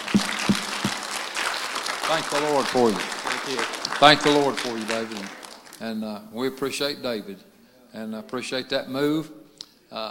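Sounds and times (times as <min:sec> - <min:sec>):
audience clapping: 0:00.0 - 0:05.9
speech: 0:02.1 - 0:10.0.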